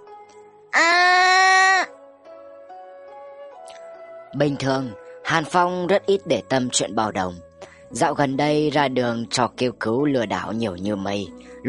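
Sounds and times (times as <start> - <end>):
panicked scream: 0.8 - 1.9
speech: 4.4 - 11.6.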